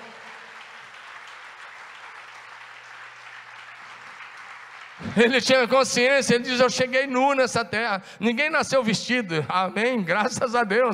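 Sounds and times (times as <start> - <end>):
audience applauding: 0.0 - 6.3
speech: 5.0 - 10.9.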